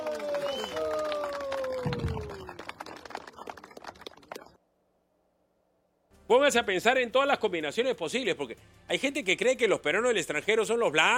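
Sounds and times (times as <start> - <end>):
crowd clapping at a rally: 0.0 - 4.6
speech: 6.3 - 11.1.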